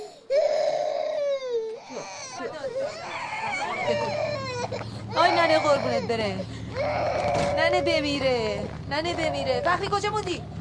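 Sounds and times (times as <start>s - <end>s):
baby crying: 0.0s - 8.0s
speech: 5.6s - 10.6s.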